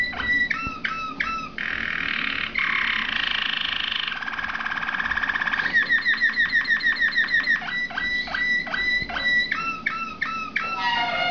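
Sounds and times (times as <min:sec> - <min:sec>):
Waterslager canary song: 0:00.0 - 0:11.2.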